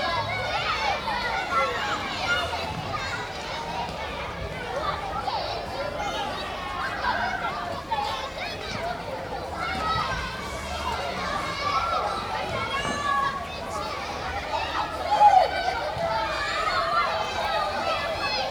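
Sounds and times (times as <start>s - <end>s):
school playground exterior ambience with people: 0.0s - 18.5s.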